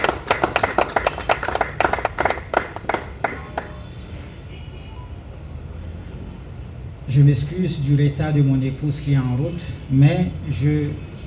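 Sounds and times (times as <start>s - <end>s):
audience applause: 0.0s - 3.8s
speech: 7.1s - 11.2s.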